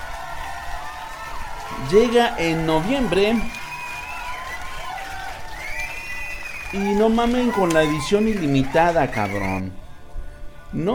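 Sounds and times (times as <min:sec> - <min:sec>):
audience applause and cheering: 0:00.0 - 0:09.7
speech: 0:01.8 - 0:03.6, 0:06.7 - 0:09.8, 0:10.7 - 0:10.9.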